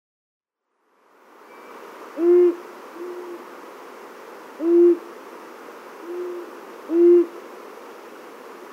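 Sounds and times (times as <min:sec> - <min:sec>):
Long-eared owl giving low short hoots: 0:02.2 - 0:03.4, 0:04.6 - 0:05.1, 0:06.0 - 0:07.4.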